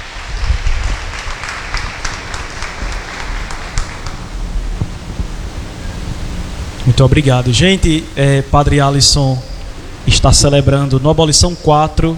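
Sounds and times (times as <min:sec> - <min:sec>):
round of applause: 0:00.0 - 0:07.0
speech: 0:06.9 - 0:12.1.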